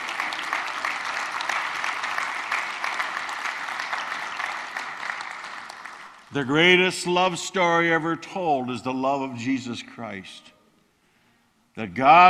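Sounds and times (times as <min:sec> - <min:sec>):
audience clapping in praise: 0:00.0 - 0:06.4
speech: 0:06.3 - 0:10.6, 0:11.8 - 0:12.2.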